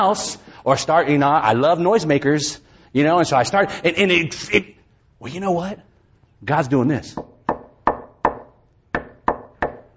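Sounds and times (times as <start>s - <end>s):
speech: 0.0s - 7.3s
knocking on wood: 7.2s - 9.9s.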